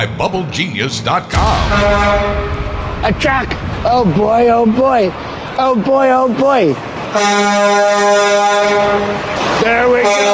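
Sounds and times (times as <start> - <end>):
speech: 0.0 - 10.3
truck horn honking: 1.6 - 2.9, 6.8 - 10.3.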